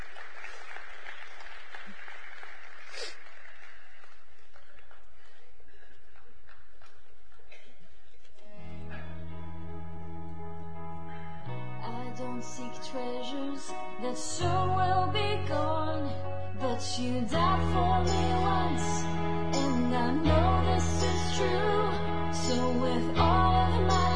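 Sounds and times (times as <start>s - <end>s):
crowd clapping: 0.0s - 8.2s
sustained musical chords: 8.6s - 24.1s.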